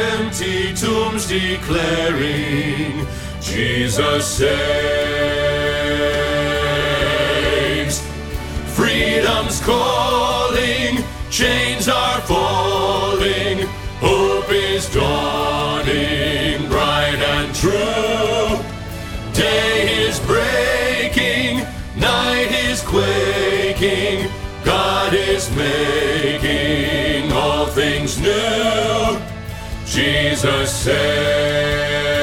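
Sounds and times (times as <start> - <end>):
bass choir rehearsal part: 0.0 - 32.2.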